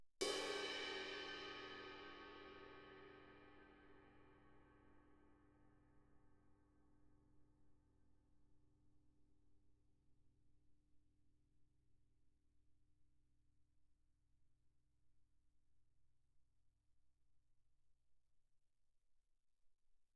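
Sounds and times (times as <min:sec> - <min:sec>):
suspended cymbal crash struck with stick shoulder: 0:00.2 - 0:03.7.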